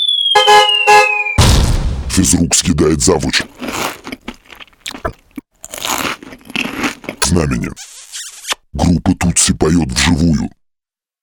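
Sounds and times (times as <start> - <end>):
falling whistle of a jeep falling from a great height: 0.0 - 1.5
heavy crash of a jeep: 1.4 - 2.3
speech: 2.2 - 4.0, 7.4 - 7.9, 8.7 - 10.6.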